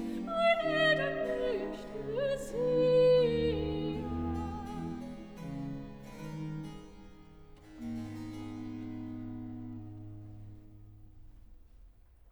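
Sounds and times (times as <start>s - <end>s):
soprano singing recitative: 0.0s - 5.4s.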